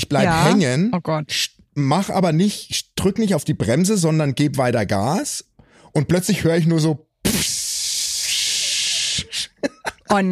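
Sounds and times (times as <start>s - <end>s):
speech: 0.0s - 7.6s, 9.6s - 10.3s
voice imitating air escaping from a burst tire: 7.2s - 9.6s
laughter: 9.2s - 10.3s.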